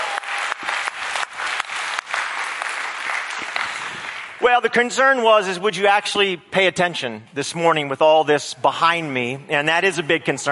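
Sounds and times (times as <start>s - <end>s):
audience applause: 0.0s - 4.4s
speech: 4.5s - 10.5s.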